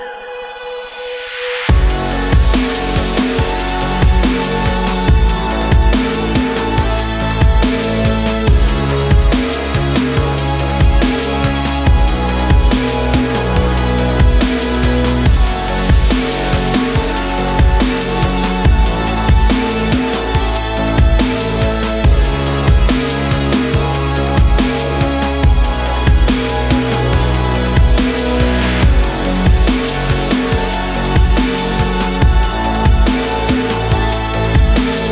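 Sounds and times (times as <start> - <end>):
extreme sports dubstep music: 0.0 - 35.1.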